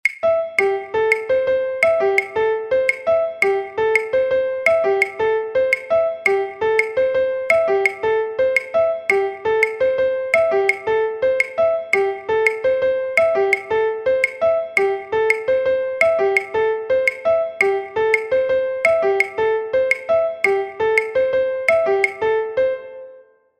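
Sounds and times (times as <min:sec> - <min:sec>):
piano: 0:00.0 - 0:23.5.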